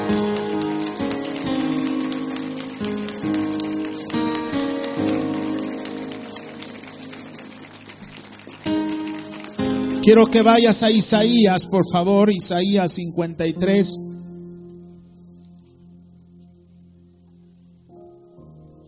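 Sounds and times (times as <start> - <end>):
audience applauding: 0.0 - 11.6
speech: 10.0 - 14.2.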